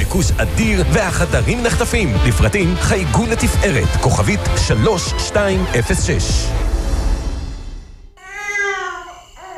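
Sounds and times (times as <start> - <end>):
speech: 0.1 - 6.7
baby crying: 8.2 - 9.5.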